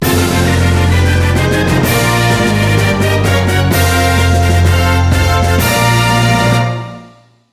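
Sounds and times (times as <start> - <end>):
win jingle: 0.0 - 7.0.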